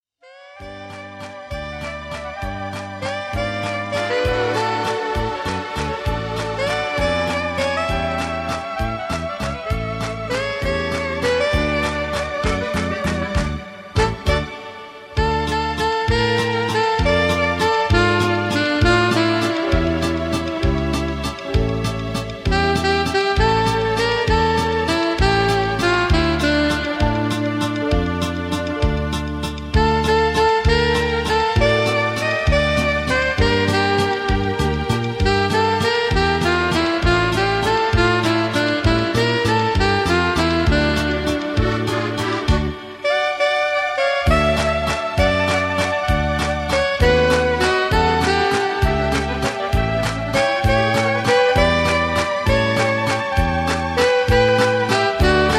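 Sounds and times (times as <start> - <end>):
waltz music: 0.3 - 55.5.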